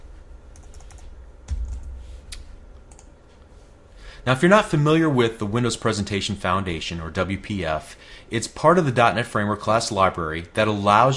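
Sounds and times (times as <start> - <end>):
steady low hum: 0.0 - 4.2
typing on a computer keyboard: 0.5 - 1.9
speech: 4.2 - 11.1.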